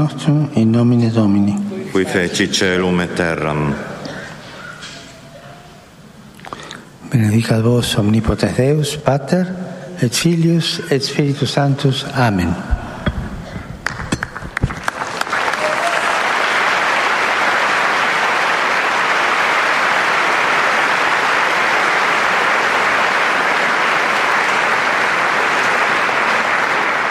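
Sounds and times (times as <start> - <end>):
speech: 0.0 - 3.9, 7.2 - 12.8
large crowd applauding: 13.8 - 27.0.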